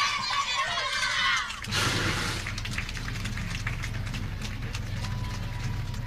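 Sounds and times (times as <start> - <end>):
audience applause: 0.0 - 6.0.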